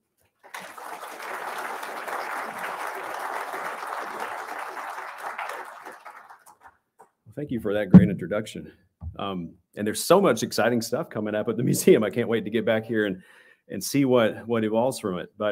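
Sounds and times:
audience applause at a museum talk: 0.4s - 6.7s
speech: 7.4s - 15.5s
laughter: 11.5s - 12.2s.

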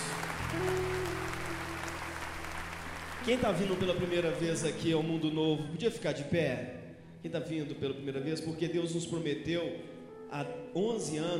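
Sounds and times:
audience applause: 0.0s - 5.2s
speech: 3.2s - 11.3s.

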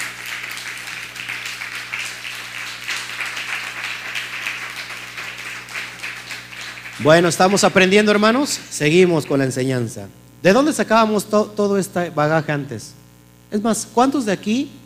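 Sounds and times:
crowd applauding: 0.0s - 9.6s
speech: 7.0s - 14.8s.

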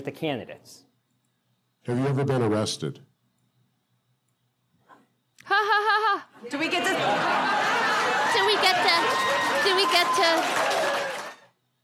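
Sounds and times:
speech: 0.0s - 0.9s, 1.8s - 3.1s, 5.6s - 7.6s, 8.3s - 11.0s
crowd laughing: 5.5s - 11.4s
people whooping and chattering: 6.5s - 11.6s
crowd clapping: 6.8s - 11.6s.

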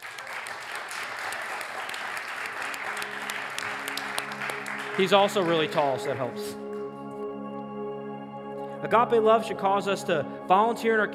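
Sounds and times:
audience applause: 0.0s - 6.8s
speech: 5.0s - 6.7s, 8.8s - 11.1s.

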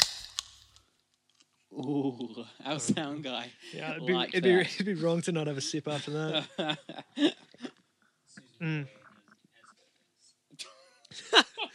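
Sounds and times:
cider can cracking open with a fizzing hiss: 0.0s - 0.8s
speech: 1.7s - 7.6s, 8.6s - 9.0s
laughter: 2.8s - 7.8s, 10.6s - 11.7s.

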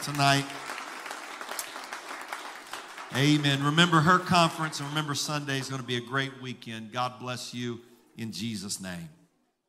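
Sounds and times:
speech: 0.0s - 0.6s, 3.1s - 9.2s
audience clapping hands: 0.0s - 6.4s.

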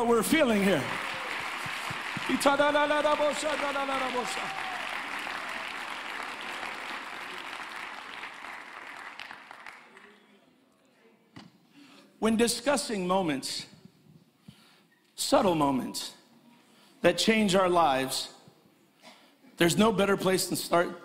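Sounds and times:
speech: 0.0s - 1.0s, 2.3s - 4.7s, 12.2s - 13.7s, 15.2s - 16.2s, 17.0s - 18.4s, 19.6s - 21.0s
audience hand clapping in praise: 0.0s - 10.4s.

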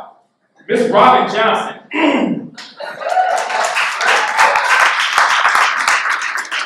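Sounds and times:
speech: 0.7s - 3.1s
audience clapping: 2.6s - 6.6s.

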